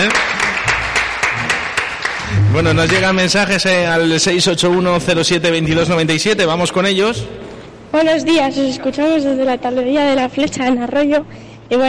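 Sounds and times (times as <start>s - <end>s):
speech: 0.0s - 0.3s, 2.6s - 11.8s
small group applauding in studio: 0.0s - 3.4s.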